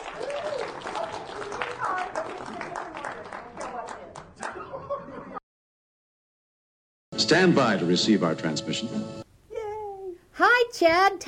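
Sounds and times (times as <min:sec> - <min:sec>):
audience applause: 0:00.0 - 0:05.0
laughter: 0:04.4 - 0:05.4
speech: 0:07.3 - 0:09.2, 0:10.8 - 0:11.2.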